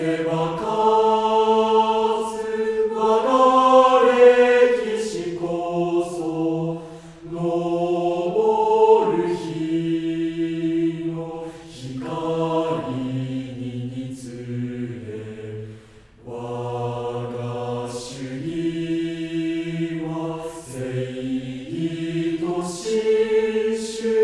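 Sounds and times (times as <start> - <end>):
mixed choir singing: 0.0 - 24.2.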